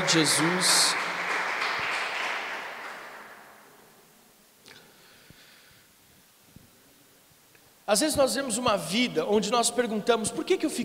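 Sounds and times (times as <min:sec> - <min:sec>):
audience applauding: 0:00.0 - 0:03.8
speech: 0:00.1 - 0:01.0, 0:07.9 - 0:10.8.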